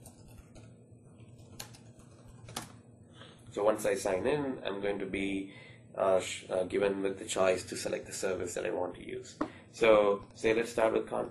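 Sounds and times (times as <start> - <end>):
typing credentials on a computer keyboard: 0.0 - 2.8
speech: 3.6 - 11.3.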